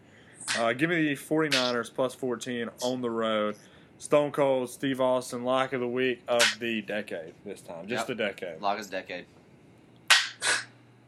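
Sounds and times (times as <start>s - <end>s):
speech: 0.6s - 9.4s
slow hand clapping: 1.5s - 1.8s, 6.4s - 6.6s, 10.1s - 10.5s.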